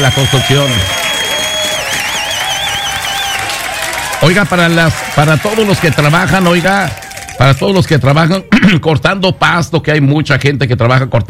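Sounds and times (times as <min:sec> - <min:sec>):
applause: 0:00.0 - 0:08.2
speech: 0:00.1 - 0:01.1, 0:04.2 - 0:11.2.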